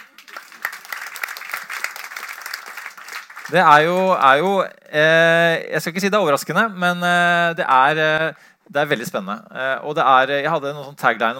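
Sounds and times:
audience applause: 0.0s - 4.3s
speech: 3.5s - 11.3s.

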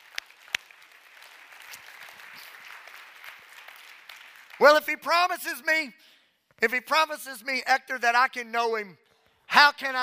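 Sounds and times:
audience clapping: 0.0s - 5.4s
speech: 4.6s - 9.0s, 9.6s - 10.0s.

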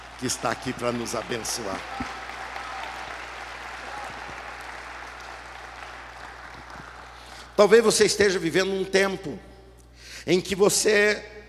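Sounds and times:
audience applauding: 0.0s - 7.6s
speech: 0.2s - 2.2s, 7.6s - 9.5s, 10.2s - 11.4s.

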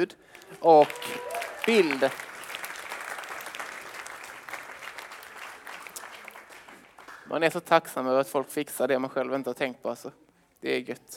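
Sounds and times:
speech: 0.0s - 2.3s, 7.3s - 11.1s
audience applauding: 0.3s - 7.3s.

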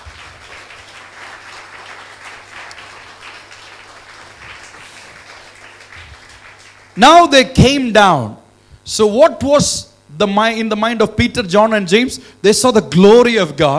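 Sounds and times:
audience clapping hands: 0.0s - 7.4s
speech: 7.0s - 13.7s.

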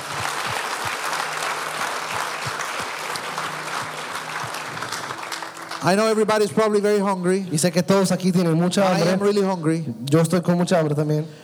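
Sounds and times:
audience applauding: 0.0s - 7.3s
speech: 5.8s - 11.4s.

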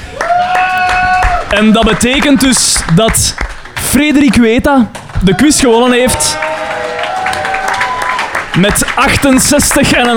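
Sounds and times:
audience applause: 0.0s - 4.4s, 5.0s - 10.1s
speech: 1.5s - 6.6s, 8.6s - 10.1s.

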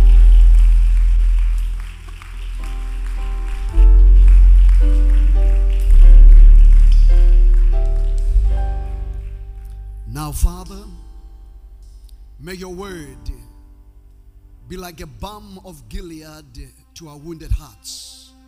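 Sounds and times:
audience clapping: 0.0s - 10.9s
deep bass line: 0.0s - 15.2s
sustained keyboard chords: 0.0s - 16.2s
speech: 10.4s - 10.8s, 12.4s - 13.5s, 14.7s - 18.2s.

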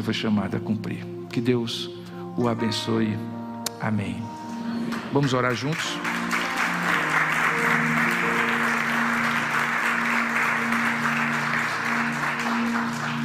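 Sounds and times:
speech: 0.0s - 4.4s, 5.1s - 6.1s
audience clapping: 4.9s - 13.2s.

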